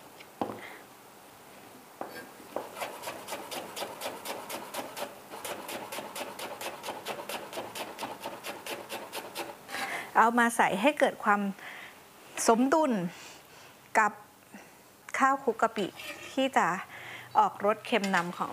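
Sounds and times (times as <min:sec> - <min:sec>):
fruit being grated with a serrated peeler: 0:02.7 - 0:09.6
speech: 0:10.2 - 0:11.6, 0:12.5 - 0:13.2, 0:14.0 - 0:14.2, 0:15.2 - 0:18.5.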